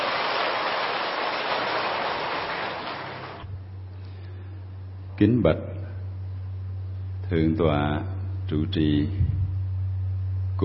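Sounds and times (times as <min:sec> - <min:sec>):
audience applause: 0:00.0 - 0:03.5
faint low hum: 0:03.2 - 0:10.6
speech: 0:05.2 - 0:05.8, 0:07.3 - 0:09.4.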